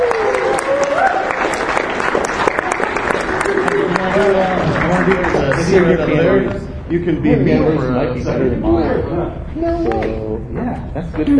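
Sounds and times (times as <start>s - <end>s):
crowd applauding: 0.0s - 6.5s
speech: 5.8s - 11.3s.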